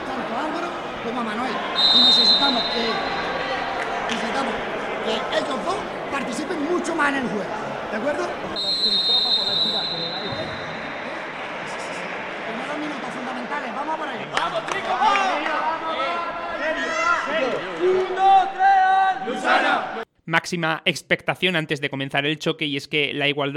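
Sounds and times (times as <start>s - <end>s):
crowd cheering in an indoor sports hall during a match: 0.0s - 20.0s
speech: 1.2s - 3.2s, 4.4s - 10.3s, 12.8s - 18.7s, 19.3s - 23.5s
sharper high calls: 1.7s - 4.0s, 8.6s - 12.2s.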